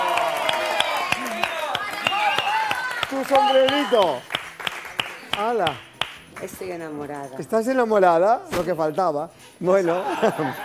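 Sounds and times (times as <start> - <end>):
audience applause: 0.0 - 6.1
speech: 3.2 - 4.3, 5.4 - 10.6
laughter: 9.8 - 10.6.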